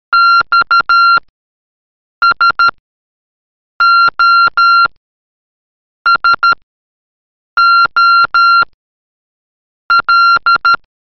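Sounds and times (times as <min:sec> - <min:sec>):
Morse code beeps: 0:00.2 - 0:01.2, 0:02.2 - 0:02.8, 0:03.8 - 0:04.9, 0:06.1 - 0:06.6, 0:07.6 - 0:08.7, 0:09.9 - 0:10.9.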